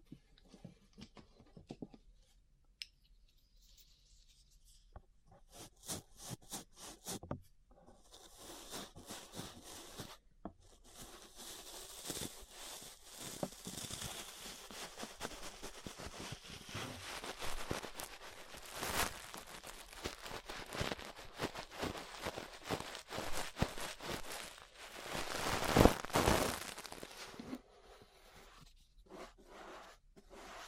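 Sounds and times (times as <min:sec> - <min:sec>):
ear brushing bristles scratching: 0:05.5 - 0:07.3, 0:08.0 - 0:30.6.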